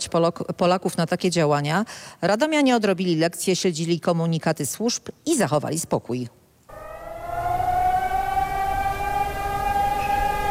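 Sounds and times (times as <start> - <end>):
speech: 0.0 - 6.4
modulated civil defense alarm siren wailing: 6.7 - 10.4.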